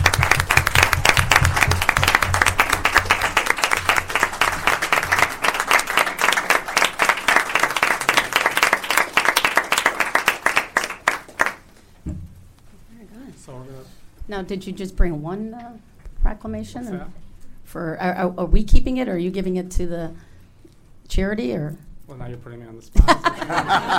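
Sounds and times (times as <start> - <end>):
audience applause: 0.0 - 11.7
speech: 14.4 - 15.8, 16.4 - 20.3, 21.2 - 23.9
laughter: 23.0 - 23.9.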